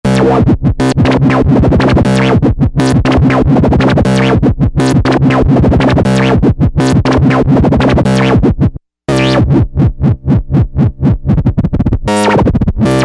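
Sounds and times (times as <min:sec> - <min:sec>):
rate wobble effect: 0:00.0 - 0:09.9, 0:10.6 - 0:13.0.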